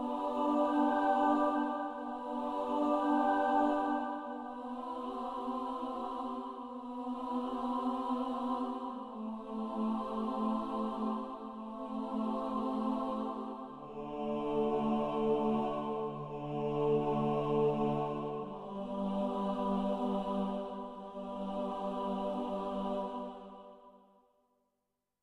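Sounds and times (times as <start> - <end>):
choir singing slowly: 0.0 - 23.9.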